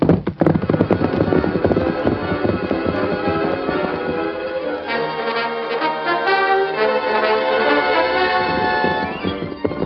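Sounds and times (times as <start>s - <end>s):
great horse galloping away: 0.0s - 6.2s, 7.4s - 9.8s.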